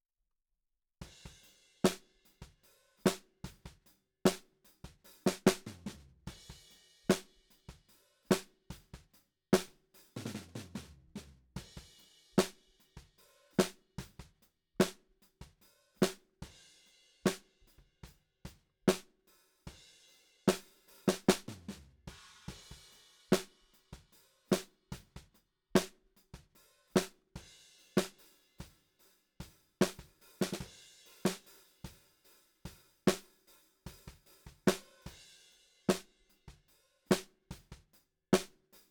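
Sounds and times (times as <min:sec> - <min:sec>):
snare drum: 0:01.2 - 0:07.4, 0:08.3 - 0:12.7, 0:13.6 - 0:16.3, 0:17.3 - 0:17.6, 0:18.9 - 0:19.1, 0:20.5 - 0:27.2, 0:28.0 - 0:28.2, 0:29.8 - 0:32.0, 0:33.0 - 0:35.2, 0:35.9 - 0:36.1, 0:37.1 - 0:37.8, 0:38.4 - 0:38.8.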